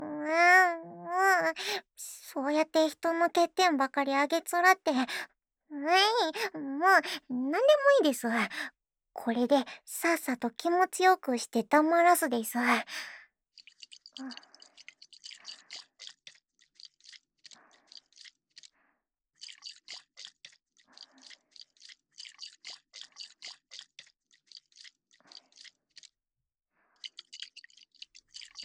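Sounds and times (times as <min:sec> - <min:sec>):
speech: 0:01.6 - 0:13.2, 0:14.2 - 0:14.5
baby oil squishing between hands: 0:13.6 - 0:18.8, 0:19.4 - 0:26.2, 0:27.0 - 0:28.6.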